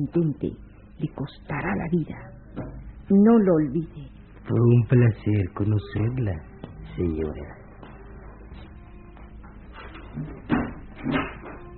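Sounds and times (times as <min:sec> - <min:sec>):
speech: 0:00.0 - 0:07.6, 0:10.2 - 0:11.3
door closing with wooden knocks: 0:09.8 - 0:11.7.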